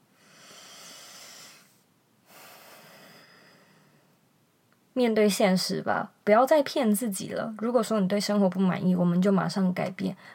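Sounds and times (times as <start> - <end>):
slow deep breath: 0.0 - 4.2
speech: 5.0 - 10.3.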